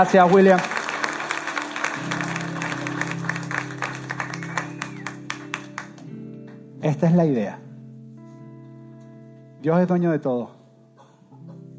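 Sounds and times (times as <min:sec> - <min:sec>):
speech: 0:00.0 - 0:00.8, 0:02.0 - 0:02.2, 0:06.8 - 0:07.6, 0:09.6 - 0:10.6
audience applause: 0:00.0 - 0:06.1.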